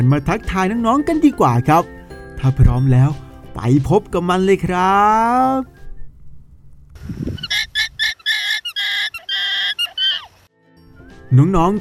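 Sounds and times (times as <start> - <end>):
speech: 0.0 - 5.8, 11.3 - 11.7
alpaca honking calls: 7.4 - 10.4.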